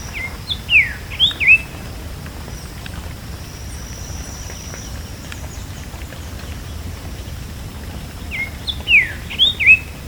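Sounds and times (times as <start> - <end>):
bird giving whistled, slurred notes: 0.1 - 1.7, 8.3 - 9.9.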